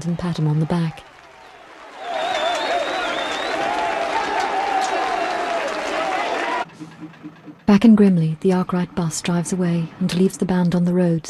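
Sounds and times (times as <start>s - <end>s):
speech: 0.0s - 1.1s, 7.7s - 11.2s
small group clapping: 0.0s - 6.7s
excited shouts and whoops: 0.7s - 6.7s.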